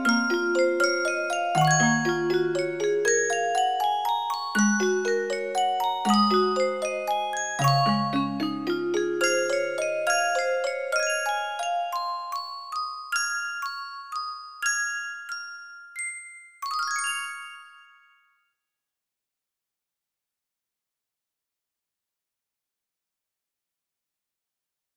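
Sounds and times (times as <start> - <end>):
Christmas song: 0.0 - 18.6.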